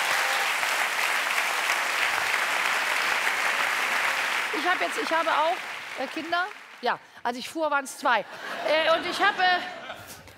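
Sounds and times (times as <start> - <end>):
audience applause: 0.0 - 7.0
speech: 4.6 - 9.8
laughter: 8.2 - 10.3.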